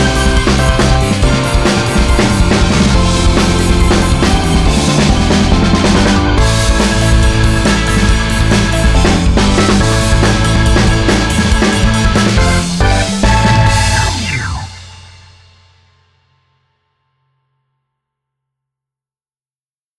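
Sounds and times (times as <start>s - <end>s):
rock music: 0.0s - 15.8s.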